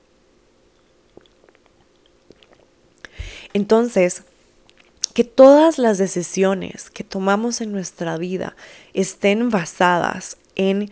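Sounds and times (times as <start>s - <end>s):
person sipping water: 0.8s - 3.4s
swallowing noises: 1.0s - 3.2s
speech: 3.6s - 4.3s, 5.2s - 10.9s.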